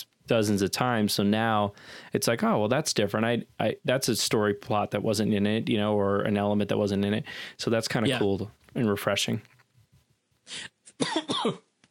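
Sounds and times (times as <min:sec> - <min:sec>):
speech: 0:00.0 - 0:09.5, 0:10.5 - 0:11.7
person coughing: 0:08.0 - 0:08.3, 0:11.0 - 0:11.7.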